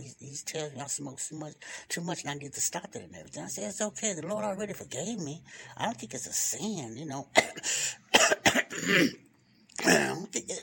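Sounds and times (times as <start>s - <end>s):
speech: 0.4s - 9.2s, 9.8s - 10.6s
throat clearing: 8.2s - 9.2s, 9.8s - 10.6s.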